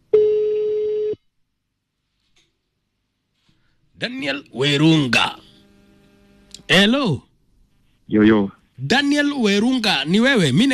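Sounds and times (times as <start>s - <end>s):
telephone ringback tone on an outgoing call: 0.1s - 1.2s
speech: 4.0s - 5.4s, 6.7s - 7.3s, 8.1s - 10.7s.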